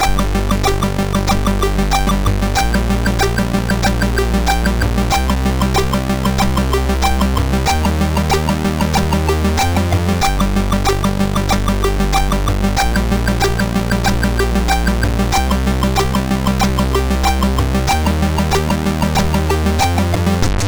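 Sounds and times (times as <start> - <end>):
drum beat on MOS6581R3 sound chip: 0.0 - 20.5.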